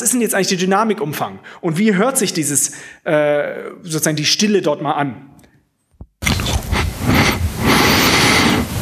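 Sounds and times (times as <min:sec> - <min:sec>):
speech: 0:00.0 - 0:05.4
breathing into a headset microphone: 0:01.4 - 0:01.7, 0:02.7 - 0:03.1, 0:06.3 - 0:08.7.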